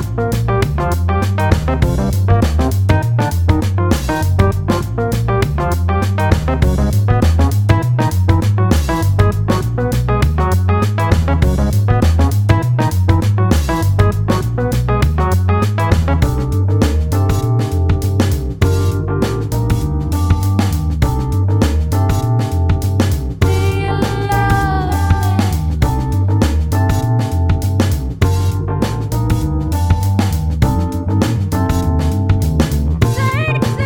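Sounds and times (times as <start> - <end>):
beat: 0.0 - 33.8.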